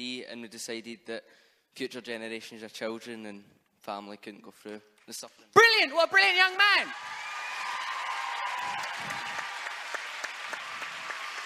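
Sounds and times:
speech: 0:00.0 - 0:07.3
audience applause: 0:07.0 - 0:11.4.

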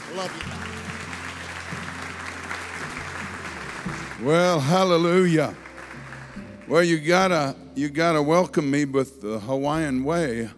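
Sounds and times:
audience hand clapping applause: 0:00.0 - 0:07.3
speech: 0:00.1 - 0:00.9, 0:04.2 - 0:05.6, 0:06.7 - 0:10.5.

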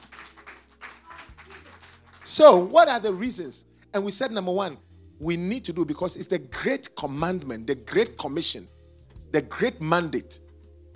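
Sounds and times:
audience clapping: 0:00.0 - 0:03.4
speech: 0:02.3 - 0:10.4.

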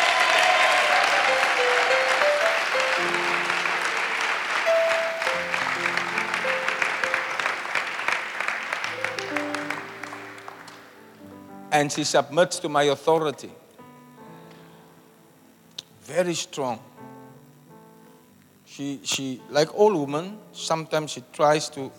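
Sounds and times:
audience applause: 0:00.0 - 0:11.2
speech: 0:11.8 - 0:13.6, 0:16.1 - 0:16.9, 0:18.8 - 0:21.9.

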